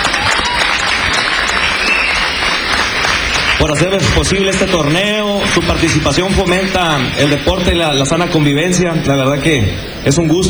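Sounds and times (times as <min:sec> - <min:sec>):
audience applause: 0:00.0 - 0:07.9
speech: 0:03.6 - 0:10.4.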